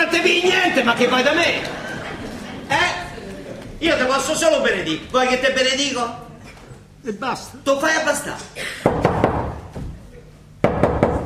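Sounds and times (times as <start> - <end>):
speech: 0.2 - 1.9, 3.8 - 6.2, 7.0 - 8.8
laughter: 0.2 - 4.1
knocking on a door: 8.9 - 10.0, 10.6 - 11.2.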